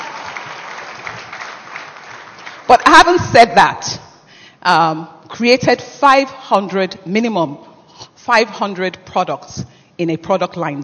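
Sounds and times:
audience clapping: 0.0s - 2.7s
speech: 2.7s - 4.0s, 4.6s - 10.8s.

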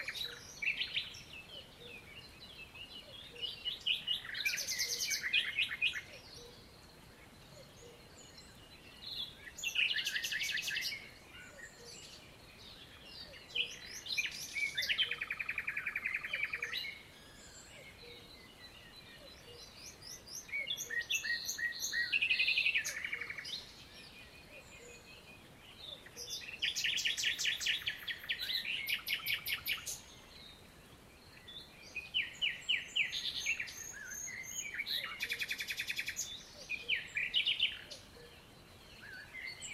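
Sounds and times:
birds chirping and trilling: 0.0s - 39.7s
faint hiss: 0.0s - 39.7s.

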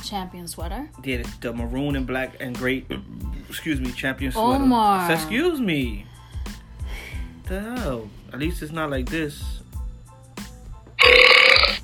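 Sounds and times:
speech: 0.1s - 6.1s, 7.5s - 9.7s
loud drawn-out burp: 11.0s - 11.8s.

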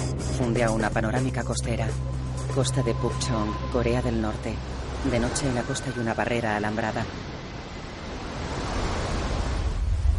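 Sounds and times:
speech: 0.4s - 7.4s
large ocean wave rolling in at night off the coast of Pukchong, North Korea: 2.4s - 10.1s.

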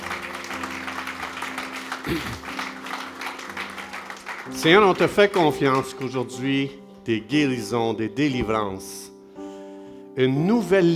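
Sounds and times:
audience applause: 0.0s - 6.3s
speech: 2.0s - 2.5s, 4.5s - 9.0s, 10.2s - 10.9s.

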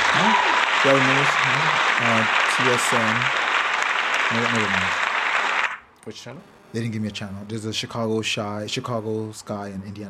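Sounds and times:
round of applause: 0.0s - 5.8s
speech: 0.3s - 3.4s, 4.3s - 5.0s, 6.0s - 10.0s.

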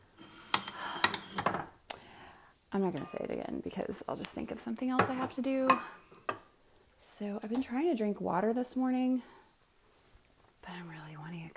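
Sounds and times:
dishes clinking: 0.2s - 1.8s, 2.9s - 3.4s
speech: 2.7s - 6.1s, 7.2s - 9.4s.

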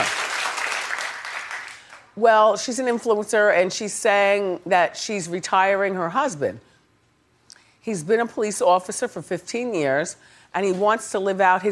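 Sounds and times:
audience clapping: 0.0s - 2.1s
speech: 2.2s - 6.7s, 7.8s - 11.7s.

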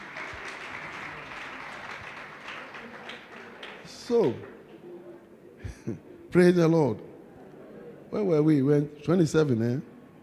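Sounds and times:
audience clapping hands: 0.0s - 4.6s
speech: 4.1s - 4.5s, 5.9s - 7.1s, 8.1s - 9.9s.

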